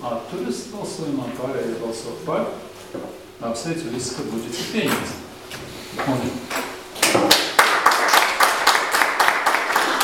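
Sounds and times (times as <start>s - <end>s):
speech: 0.0s - 6.4s
applause in council chamber: 7.0s - 10.0s.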